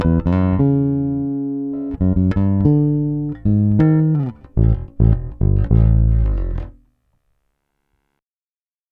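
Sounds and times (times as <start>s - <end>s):
basses: 0.0s - 6.9s.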